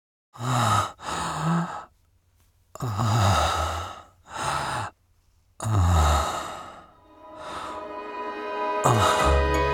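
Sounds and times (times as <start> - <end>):
man moaning: 0.4 - 1.9, 2.8 - 4.9, 5.6 - 6.8, 8.8 - 9.6.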